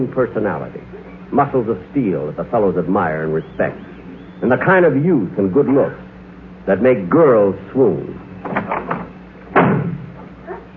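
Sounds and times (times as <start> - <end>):
speech: 0.0 - 6.0, 6.6 - 8.9
heavy door slamming in an old radio comedy: 8.4 - 10.3.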